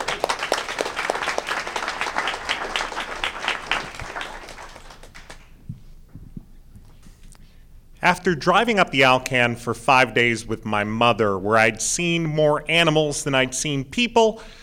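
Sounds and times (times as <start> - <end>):
audience round of applause: 0.0 - 5.6
speech: 8.0 - 14.6.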